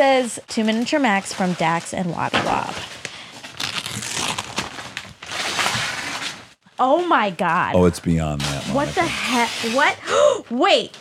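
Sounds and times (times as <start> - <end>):
speech: 0.0 - 3.0, 6.8 - 10.9
wrapping paper being crumpled: 2.8 - 6.4.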